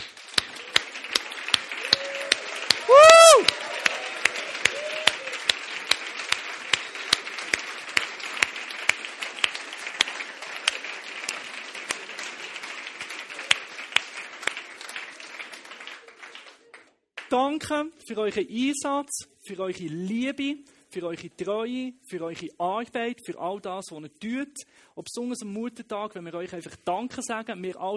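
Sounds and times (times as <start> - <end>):
audience applause: 0.0 - 16.9
loud whistle-like burst: 1.8 - 5.6
speech: 17.4 - 27.9.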